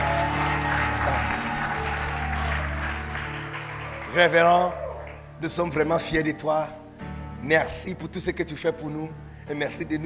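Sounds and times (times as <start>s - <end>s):
audience cheering and clapping: 0.0s - 5.4s
speech: 4.1s - 4.8s, 5.4s - 6.8s, 7.4s - 10.0s.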